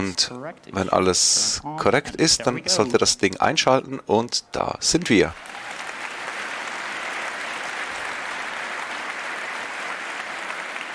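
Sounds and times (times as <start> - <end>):
speech: 0.1 - 5.7
audience applause from the hall: 5.0 - 10.9.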